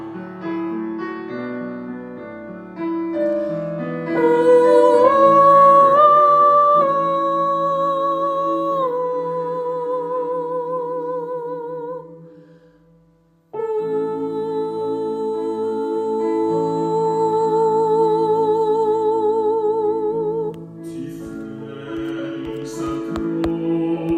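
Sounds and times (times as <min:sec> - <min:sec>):
soprano singing: 0:03.7 - 0:12.4, 0:13.5 - 0:24.1.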